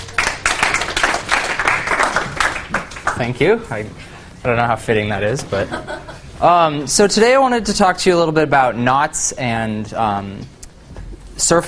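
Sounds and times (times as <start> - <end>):
audience applause welcoming a speaker at a topology lecture: 0.0 - 3.6
speech: 3.2 - 10.6, 11.4 - 11.6
laughter: 5.5 - 6.4.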